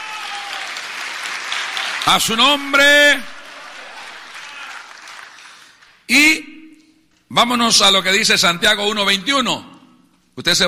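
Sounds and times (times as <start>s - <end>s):
audience applauding: 0.0s - 6.1s
speech: 2.1s - 3.3s, 7.4s - 9.7s, 10.4s - 10.6s.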